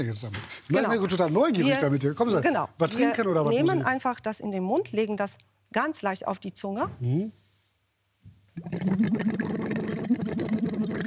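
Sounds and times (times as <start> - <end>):
speech: 0.0 - 7.4, 8.6 - 11.0
air blown through a tube into water bubbling: 8.6 - 11.0.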